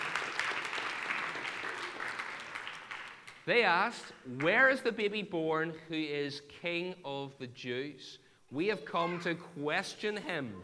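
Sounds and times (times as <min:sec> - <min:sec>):
children clapping: 0:00.0 - 0:03.5
speech: 0:03.4 - 0:10.6.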